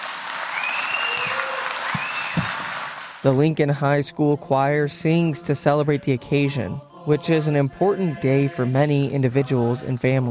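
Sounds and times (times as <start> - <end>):
theater audience applause: 0.0 - 3.2
speech: 3.2 - 10.2.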